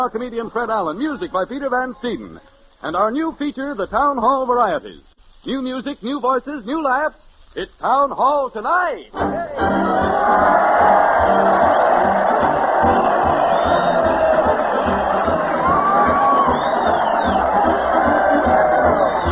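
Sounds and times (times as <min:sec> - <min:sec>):
speech: 0:00.0 - 0:11.6
large crowd cheering: 0:09.2 - 0:19.3
whoops and shouts: 0:09.2 - 0:19.3.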